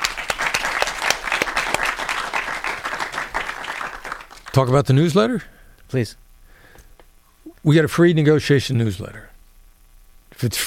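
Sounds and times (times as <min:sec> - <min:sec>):
crowd applauding: 0:00.0 - 0:04.8
speech: 0:04.6 - 0:06.2, 0:07.6 - 0:09.3, 0:10.4 - 0:10.6.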